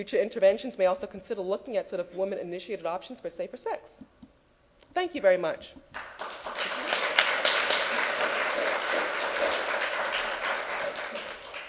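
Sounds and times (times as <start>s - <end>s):
speech: 0.0s - 4.1s, 5.0s - 6.0s
audience applause: 6.0s - 11.6s.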